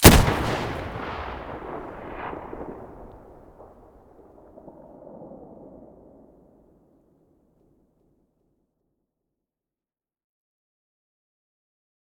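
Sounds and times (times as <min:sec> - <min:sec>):
M700 rifle muzzle blast: 0:00.0 - 0:03.7.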